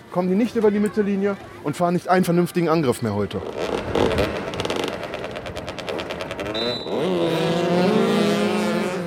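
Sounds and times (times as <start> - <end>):
speech: 0.1 - 3.9
motorcycles racing on an asphalt pitch: 3.4 - 9.0.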